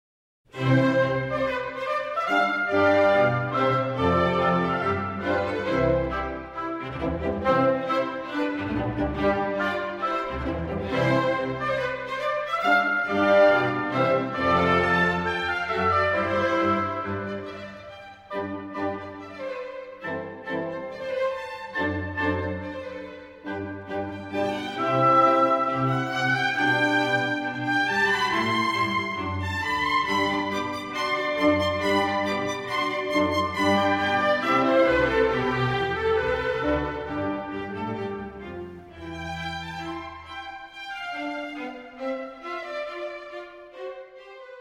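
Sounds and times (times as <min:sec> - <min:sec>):
cello concerto in C major: 0:00.5 - 0:44.6.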